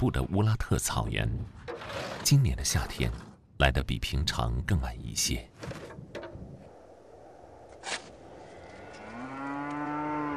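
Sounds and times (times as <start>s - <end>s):
speech: 0.0s - 5.9s
thin underfed cow mooing on a drought-hit grassland: 8.6s - 10.3s.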